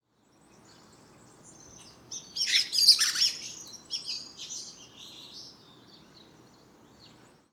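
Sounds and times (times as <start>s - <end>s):
Common blackbird twittering: 1.5s - 5.5s.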